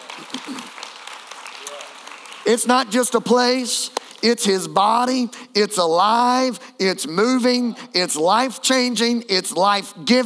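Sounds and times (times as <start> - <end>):
scattered cheers within applause: 0.0 - 2.5
audience clapping hands: 0.0 - 4.7
speech: 2.5 - 10.2.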